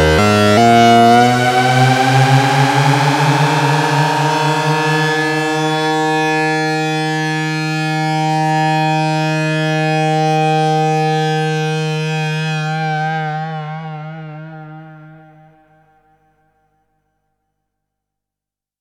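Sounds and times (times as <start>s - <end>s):
analog synthesizer in unison mode: 0.0s - 15.6s.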